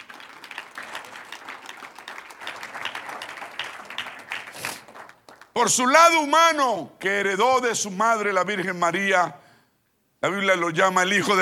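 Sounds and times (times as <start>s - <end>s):
audience applause: 0.0s - 5.6s
speech: 5.6s - 9.4s, 10.2s - 11.3s.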